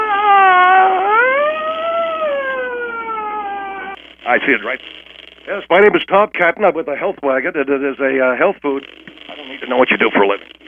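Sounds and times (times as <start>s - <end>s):
voice imitating a police siren: 0.0s - 4.0s
speech: 4.3s - 10.6s.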